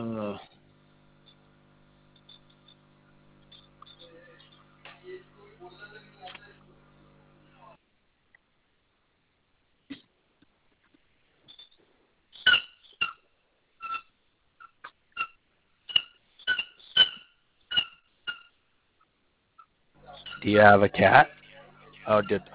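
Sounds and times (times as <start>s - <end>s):
speech: 0.0s - 0.5s, 20.4s - 21.4s, 22.1s - 22.5s
dog playing with a squeaky toy: 12.4s - 13.2s, 13.8s - 18.6s.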